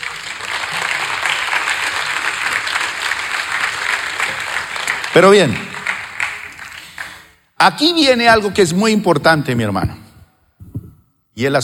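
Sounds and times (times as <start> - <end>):
applause: 0.0 - 7.4
speech: 5.2 - 5.7, 7.6 - 10.0, 11.4 - 11.6.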